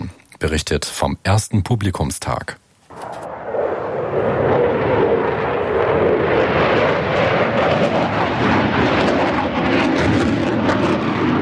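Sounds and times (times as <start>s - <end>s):
speech: 0.4s - 2.6s
Eurofighter or Tornado fighter jets thundering overhead at ILA air show: 2.9s - 11.4s.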